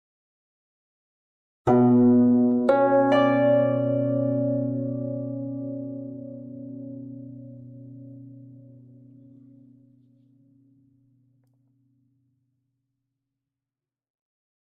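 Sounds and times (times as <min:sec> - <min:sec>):
guzheng playing triple musical intervals: 0:01.7 - 0:08.0.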